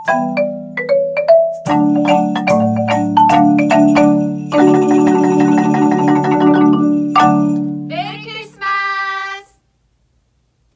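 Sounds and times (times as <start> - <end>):
Christmas song played on marimba: 0.0 - 8.6.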